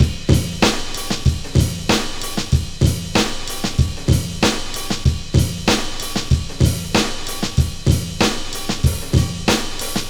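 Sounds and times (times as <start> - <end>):
hip hop beat: 0.0 - 10.0.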